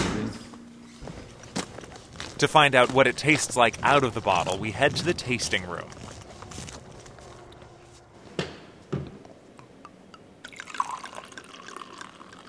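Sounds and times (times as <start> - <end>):
speech: 2.4 - 6.2
cider being poured into a glass: 10.4 - 12.4.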